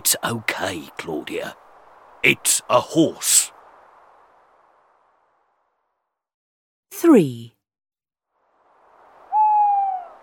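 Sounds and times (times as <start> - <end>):
speech: 0.1 - 1.6, 2.2 - 3.6, 7.0 - 7.6
owl hooting: 9.2 - 10.2.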